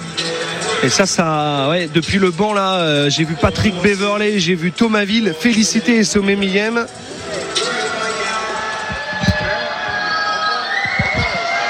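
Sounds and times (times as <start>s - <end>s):
speech: 0.8s - 7.1s
crowd booing in basketball arena: 7.7s - 11.6s
low dull thumps: 8.8s - 10.0s.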